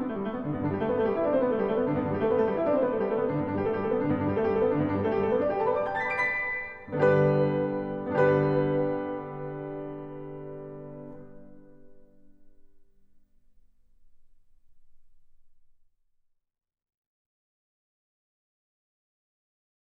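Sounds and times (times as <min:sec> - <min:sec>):
prelude in G major: 0:00.0 - 0:12.1.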